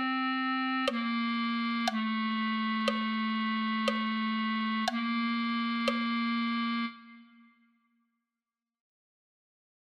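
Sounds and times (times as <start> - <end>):
clarinet: 0.0 - 7.8.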